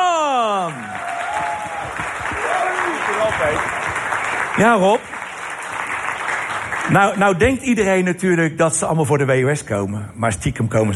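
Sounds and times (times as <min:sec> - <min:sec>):
audience applause: 0:00.0 - 0:07.4
speech: 0:04.6 - 0:05.2, 0:06.9 - 0:10.9.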